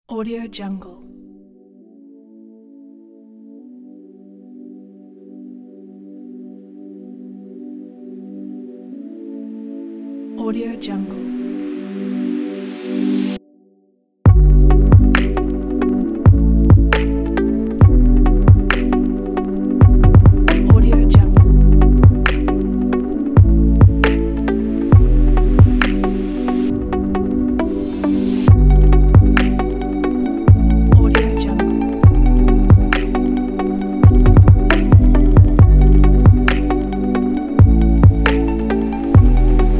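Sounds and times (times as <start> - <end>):
chill trap music: 14.3 - 39.7.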